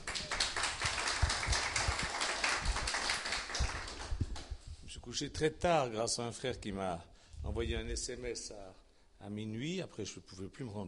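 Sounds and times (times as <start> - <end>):
audience applauding the musicians: 0.0 - 4.2
speech: 5.1 - 10.8.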